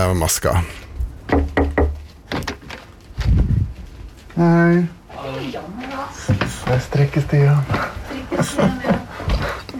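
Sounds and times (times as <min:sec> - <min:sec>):
speech: 0:00.0 - 0:01.4, 0:04.4 - 0:05.7, 0:06.7 - 0:09.0
knocking on a wooden door early in the morning: 0:01.3 - 0:02.0
laughter: 0:07.7 - 0:09.6.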